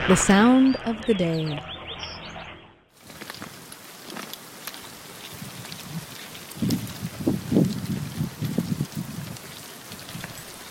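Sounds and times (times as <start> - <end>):
speech: 0.1 - 1.7
thousands of hermit crabs clicking and scraping on compost pile: 3.0 - 10.6.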